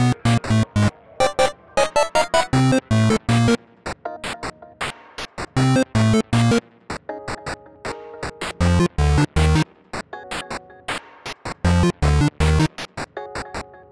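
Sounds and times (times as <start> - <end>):
8-bit chiptune music: 0.0 - 3.6, 5.6 - 6.6, 8.6 - 9.7, 11.6 - 12.8.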